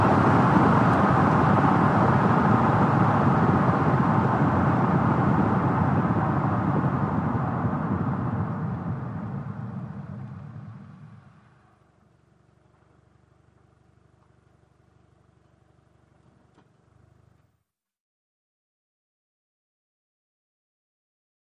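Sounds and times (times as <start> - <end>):
sedan accelerating slowly: 0.0 - 14.4.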